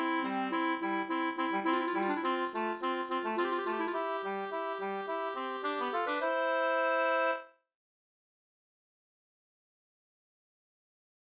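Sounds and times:
two-part slangpolska: 0:00.0 - 0:07.4.

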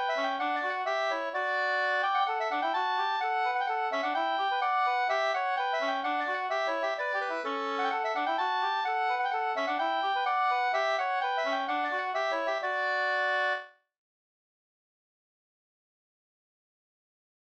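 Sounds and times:
two-part polska dance tune: 0:00.0 - 0:13.7.

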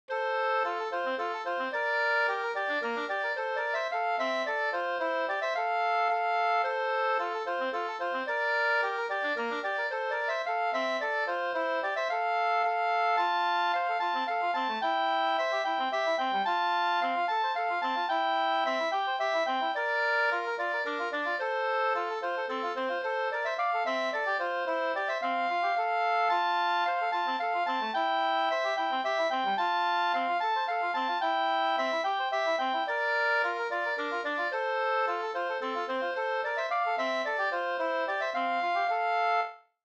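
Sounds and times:
slängpolska folk dance tune: 0:00.1 - 0:39.8.

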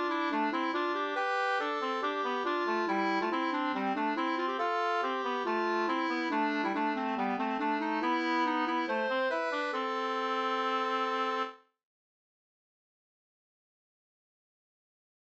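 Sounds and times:
humppa music: 0:00.0 - 0:11.1.

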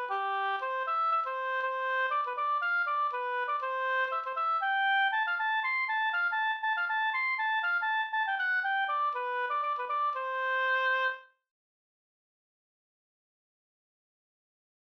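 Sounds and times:
polska folk tune: 0:00.0 - 0:11.3.

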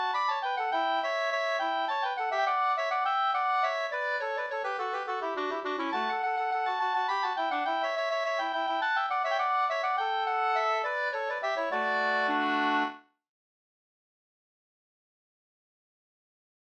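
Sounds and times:
slangpolska folk dance tune: 0:00.0 - 0:13.0.

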